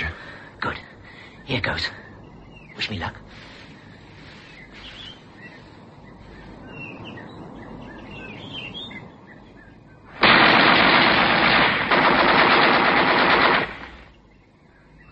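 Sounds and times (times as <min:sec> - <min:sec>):
birds chirping: 0:00.0 - 0:15.1
speech: 0:00.6 - 0:00.9, 0:01.5 - 0:02.0, 0:02.8 - 0:03.5
rapid machine-gun-like gunfire bursts: 0:10.2 - 0:14.1.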